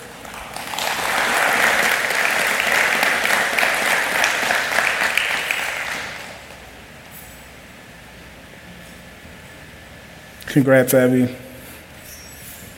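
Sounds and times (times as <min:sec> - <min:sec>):
round of applause at a recognition ceremony: 0:00.0 - 0:06.5
speech: 0:10.6 - 0:11.4.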